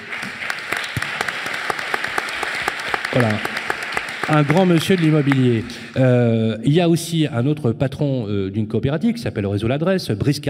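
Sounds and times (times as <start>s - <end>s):
audience applause: 0.0s - 6.2s
speech: 3.1s - 3.6s, 4.3s - 10.4s.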